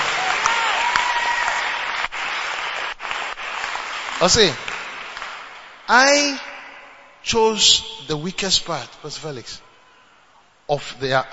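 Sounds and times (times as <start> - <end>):
audience clapping: 0.0 - 6.5
speech: 4.2 - 4.6, 5.9 - 6.5, 7.2 - 9.6, 10.7 - 11.3
person's voice: 5.9 - 9.6.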